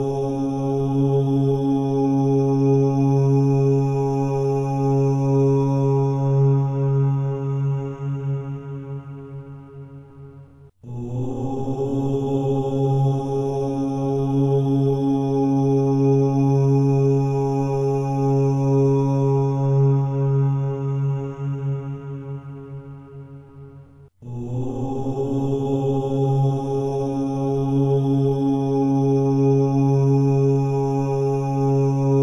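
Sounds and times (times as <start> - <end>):
mantra chanting: 0.0 - 32.2.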